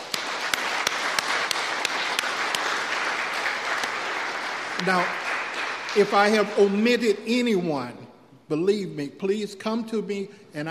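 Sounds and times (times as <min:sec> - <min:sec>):
audience applause: 0:00.0 - 0:06.8
speech: 0:04.8 - 0:05.3, 0:06.0 - 0:10.6.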